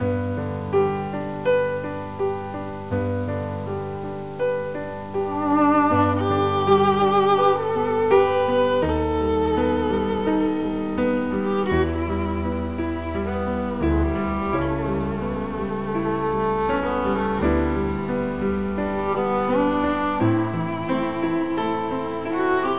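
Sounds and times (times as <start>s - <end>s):
violins: 0.0s - 22.7s.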